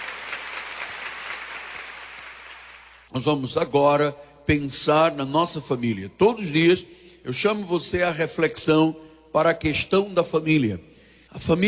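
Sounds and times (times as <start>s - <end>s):
audience applause: 0.0s - 3.0s
speech: 3.1s - 11.6s.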